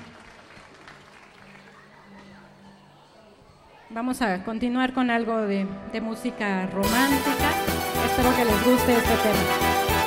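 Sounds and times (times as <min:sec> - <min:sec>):
audience clapping: 0:00.0 - 0:02.6
speech: 0:03.9 - 0:09.7.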